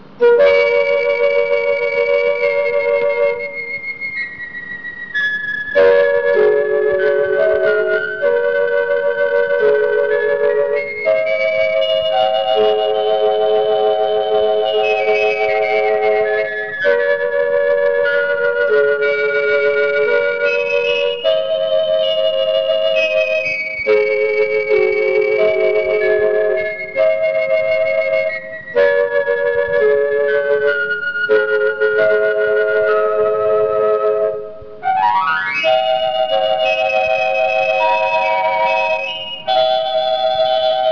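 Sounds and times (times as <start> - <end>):
organ: 0.0 - 40.9.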